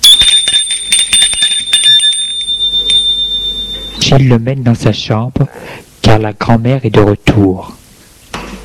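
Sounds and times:
doorbell ringing: 0.0s - 4.1s
speech: 4.1s - 7.8s.

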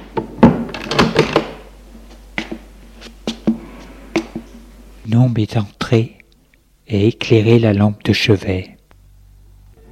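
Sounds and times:
door opening: 0.4s - 1.7s
speech: 5.2s - 6.2s, 6.9s - 8.8s.

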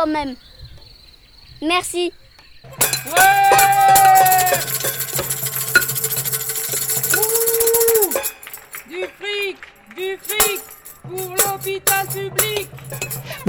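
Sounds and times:
speech: 0.0s - 0.6s, 1.6s - 5.1s, 7.2s - 13.4s
8 pm applause for health workers: 7.2s - 11.0s.

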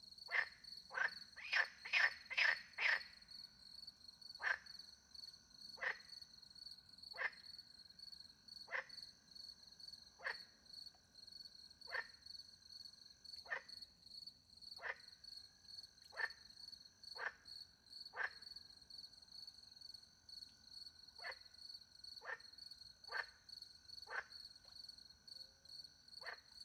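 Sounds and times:
frog croaking: 0.3s - 3.2s, 4.4s - 4.8s, 5.8s - 6.1s, 7.1s - 7.5s, 8.7s - 9.0s, 10.2s - 10.5s, 11.9s - 12.2s, 13.4s - 13.7s, 14.8s - 15.2s, 16.0s - 16.5s, 17.1s - 17.5s, 18.1s - 18.5s, 21.2s - 21.6s, 22.2s - 24.5s, 26.2s - 26.6s.

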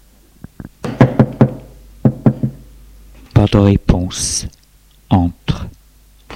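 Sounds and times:
knocking on a hospital room door: 0.8s - 2.6s
speech: 3.5s - 5.6s.

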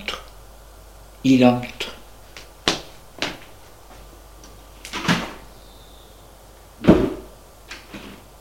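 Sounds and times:
speech: 1.2s - 1.8s
door opening and closing: 6.8s - 8.2s.

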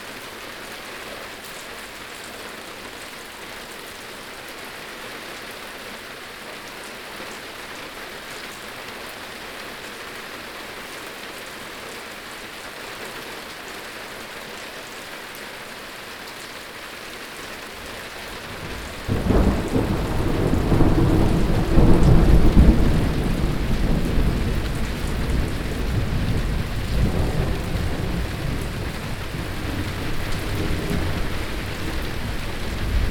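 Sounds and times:
rain falling: 0.0s - 33.0s
thunder rolling: 18.5s - 33.0s.

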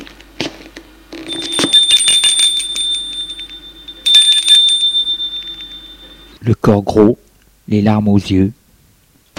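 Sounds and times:
doorbell ringing: 1.3s - 6.4s
speech: 6.5s - 8.6s.

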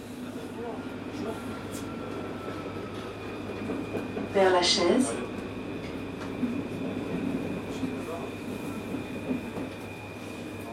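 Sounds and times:
TGV train arriving at Paris-Montparnasse station: 0.0s - 10.7s
speech: 4.4s - 5.2s.

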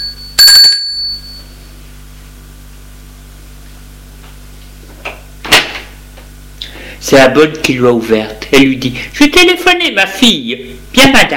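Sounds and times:
doorbell ringing: 0.0s - 1.7s
speech: 7.0s - 11.3s.

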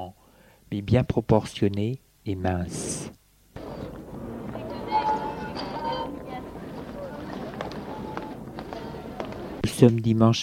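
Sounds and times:
speech: 0.7s - 3.2s, 9.8s - 10.4s
man's footsteps on a deserted street: 3.6s - 9.8s.

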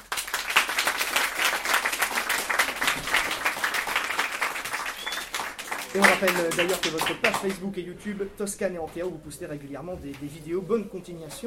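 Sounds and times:
audience applause: 0.0s - 7.6s
speech: 6.0s - 11.4s.

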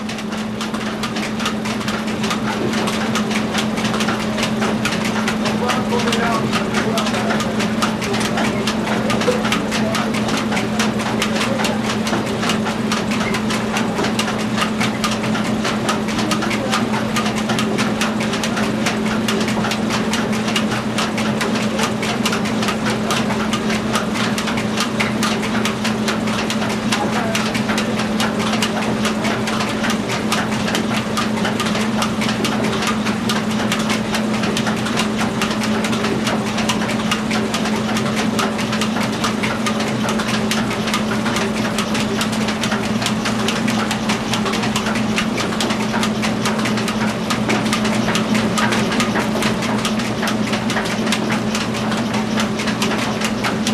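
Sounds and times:
sawmill machinery: 0.2s - 53.7s.

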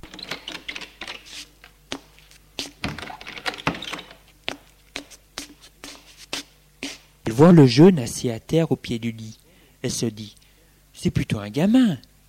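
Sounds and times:
bedroom door handle and frame clicking: 0.0s - 1.3s, 2.8s - 4.2s
speech: 7.4s - 10.4s, 11.0s - 12.1s.

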